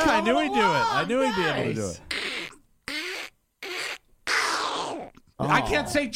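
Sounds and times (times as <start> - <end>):
speech: 0.2 - 2.1, 5.4 - 6.1
voice imitating a cartoon duck with raspy squawks: 2.1 - 5.9.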